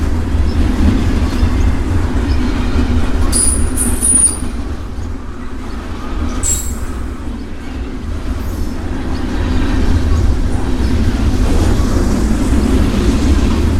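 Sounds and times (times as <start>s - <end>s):
freight train in Burnaby BC Canada: 0.0s - 13.7s
railway crossing in Burnaby BC Canada: 3.2s - 5.0s, 6.4s - 7.4s.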